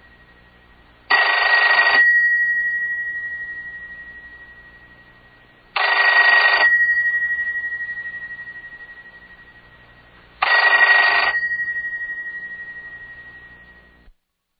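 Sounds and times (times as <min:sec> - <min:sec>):
telephone ringing: 0:01.1 - 0:04.7, 0:05.8 - 0:09.5, 0:10.4 - 0:14.1.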